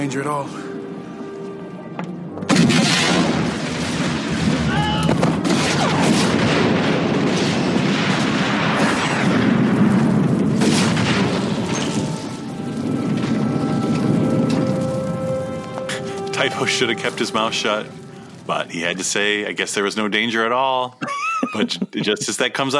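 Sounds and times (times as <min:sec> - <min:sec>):
speech: 0:00.0 - 0:00.7, 0:16.6 - 0:22.7
crackling debris: 0:00.0 - 0:20.8
Padmé's ship exploding on a landing platform: 0:02.5 - 0:19.9
laughter: 0:21.0 - 0:22.6.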